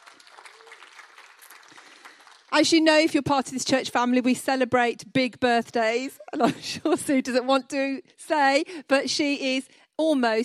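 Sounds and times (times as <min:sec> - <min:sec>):
crowd applauding: 0:00.0 - 0:02.8
speech: 0:02.5 - 0:10.4.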